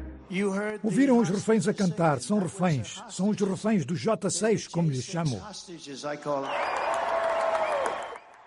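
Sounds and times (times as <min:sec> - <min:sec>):
speech: 0:00.3 - 0:06.8
rally crowd applauding: 0:06.4 - 0:08.4.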